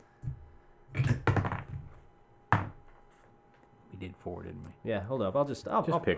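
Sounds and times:
die rolling across a hard tabletop: 0:01.0 - 0:02.0
speech: 0:04.0 - 0:06.1.

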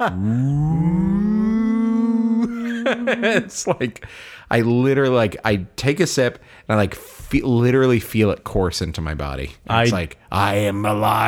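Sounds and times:
speech: 0:00.0 - 0:01.1, 0:02.9 - 0:11.2
voice imitating a cinema audio logo sound: 0:00.0 - 0:03.3
laughter: 0:02.4 - 0:04.1.

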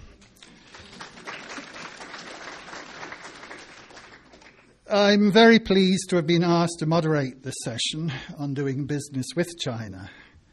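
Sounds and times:
audience applause: 0:00.0 - 0:04.8
speech: 0:04.9 - 0:10.2.

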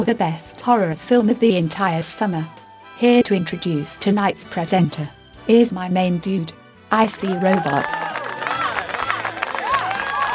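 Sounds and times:
speech: 0:00.0 - 0:08.2
audience clapping: 0:07.1 - 0:10.3.

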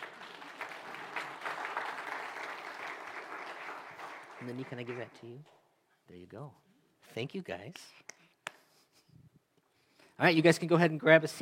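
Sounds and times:
audience clapping: 0:00.0 - 0:05.7
speech: 0:04.4 - 0:08.1, 0:10.2 - 0:11.3.

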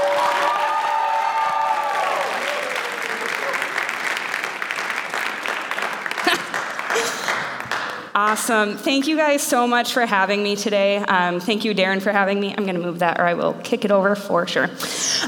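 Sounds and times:
audience applause welcoming a speaker to the stage: 0:00.0 - 0:08.1
crowd cheering: 0:00.0 - 0:08.1
speech: 0:08.2 - 0:15.1.

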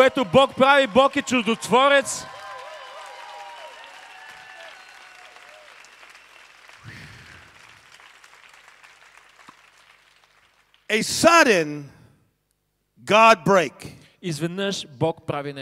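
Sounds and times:
speech: 0:00.0 - 0:02.4, 0:10.9 - 0:12.0, 0:13.0 - 0:15.5
crowd clapping hands: 0:00.0 - 0:11.1.

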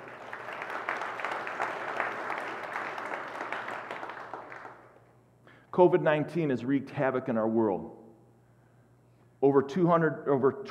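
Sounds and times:
crowd applauding: 0:00.0 - 0:05.0
speech: 0:05.8 - 0:08.0, 0:09.4 - 0:10.6.

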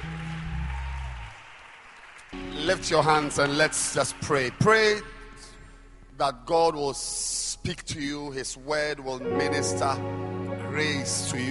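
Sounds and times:
audience clapping hands: 0:00.0 - 0:05.5
speech: 0:02.7 - 0:05.1, 0:06.2 - 0:11.5.

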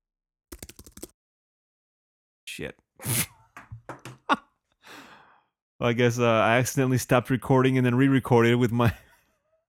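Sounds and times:
keyboard typing sound effects: 0:00.5 - 0:01.1
speech: 0:02.6 - 0:03.3, 0:05.8 - 0:09.0.

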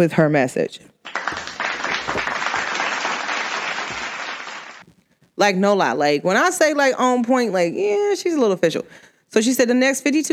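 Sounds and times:
speech: 0:00.0 - 0:01.2, 0:05.4 - 0:10.3
hands clapping: 0:01.0 - 0:04.9.

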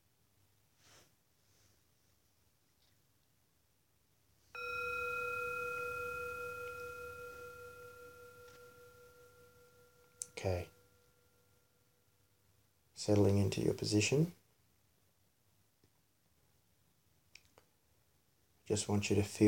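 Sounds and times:
meditation timer bell ringing: 0:04.5 - 0:12.0
speech: 0:10.4 - 0:10.8, 0:13.0 - 0:14.4, 0:18.7 - 0:19.4.

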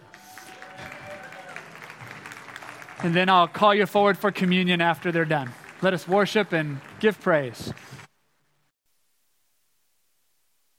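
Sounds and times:
crowd audience applauding: 0:00.0 - 0:08.1
speech: 0:03.0 - 0:08.0.

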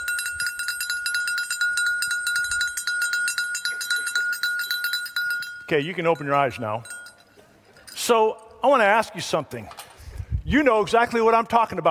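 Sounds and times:
handbell rung by a Santa Claus bell-ringer outside a Walmart at Christmas: 0:00.0 - 0:08.1
speech: 0:05.7 - 0:07.0, 0:08.1 - 0:09.8, 0:10.5 - 0:11.8.

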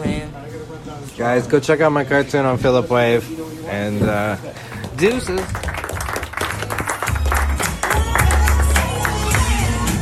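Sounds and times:
speech: 0:01.2 - 0:05.7
audience clapping: 0:04.7 - 0:09.8.

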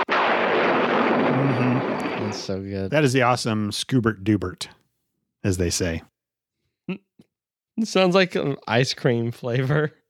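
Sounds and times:
thunder strike sound effect: 0:00.0 - 0:02.6
speech: 0:02.3 - 0:04.8, 0:05.4 - 0:06.1, 0:06.9 - 0:07.1, 0:07.8 - 0:10.0.

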